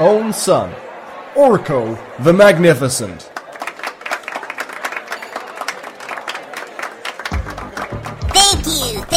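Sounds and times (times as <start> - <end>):
speech: 0.0 - 3.4
crowd applause welcoming a performer: 0.0 - 9.1
excited voice: 8.2 - 9.1.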